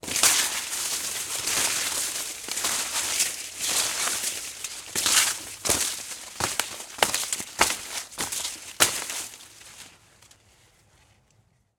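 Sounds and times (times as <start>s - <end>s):
corn stalks moving: 0.0s - 10.4s.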